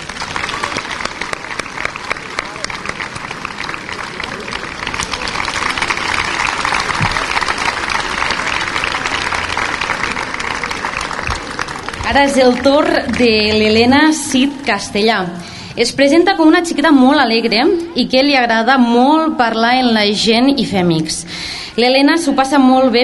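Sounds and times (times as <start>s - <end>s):
loud audience applause: 0.0s - 14.6s
speech: 12.1s - 23.0s.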